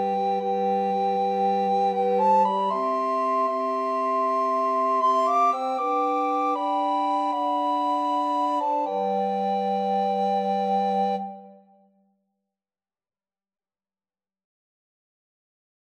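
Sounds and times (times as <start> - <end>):
recorder quartet: 0.0 - 11.5.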